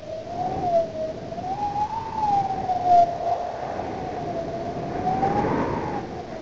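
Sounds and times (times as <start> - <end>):
wind: 0.0 - 6.4.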